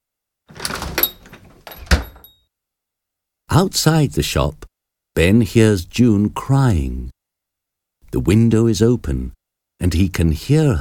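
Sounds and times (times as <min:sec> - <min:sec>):
shop door rattling and clunking as someone leaves: 0:00.5 - 0:02.4
speech: 0:03.6 - 0:07.2, 0:08.1 - 0:10.7.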